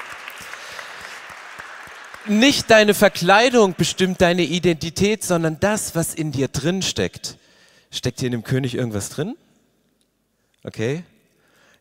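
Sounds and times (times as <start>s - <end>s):
audience applause: 0.0s - 4.2s
speech: 2.2s - 9.4s, 10.6s - 11.1s.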